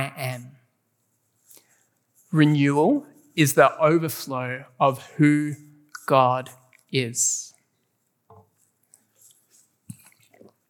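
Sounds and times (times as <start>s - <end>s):
speech: 2.3s - 7.5s
person drinking water on stage: 9.9s - 10.6s.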